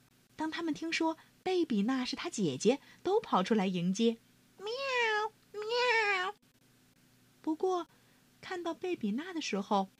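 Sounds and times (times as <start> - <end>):
speech: 0.4 - 4.2, 7.7 - 9.9
cat meowing: 4.6 - 6.4.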